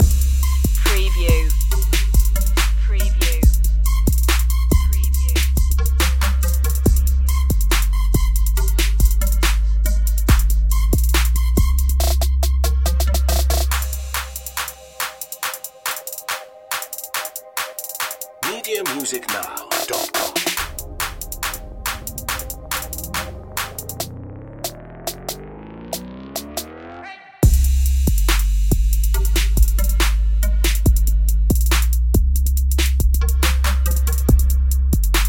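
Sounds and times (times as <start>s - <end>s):
minimal trap loop: 0.0s - 26.8s, 27.4s - 35.2s.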